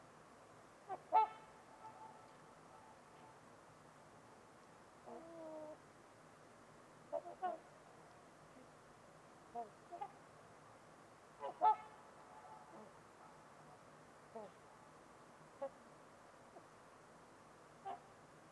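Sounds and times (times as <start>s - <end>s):
low hiss: 0.0s - 18.5s
trumpeter swans honking: 0.9s - 3.5s, 7.1s - 7.7s, 9.5s - 10.2s, 11.4s - 14.6s, 17.8s - 18.1s.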